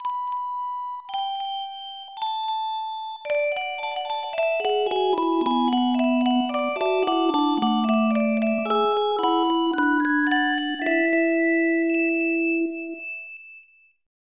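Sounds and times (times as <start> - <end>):
chime: 0.0 - 14.1.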